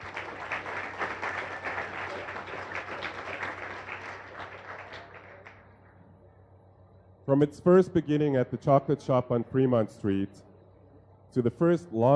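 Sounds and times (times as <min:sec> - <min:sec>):
crowd applauding: 0:00.0 - 0:05.7
speech: 0:07.3 - 0:10.5, 0:11.4 - 0:12.1.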